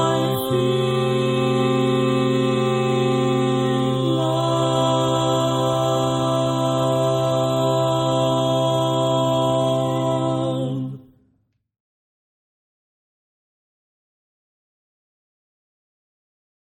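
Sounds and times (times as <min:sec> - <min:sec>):
tenor singing barbershop tags: 0:00.0 - 0:11.0.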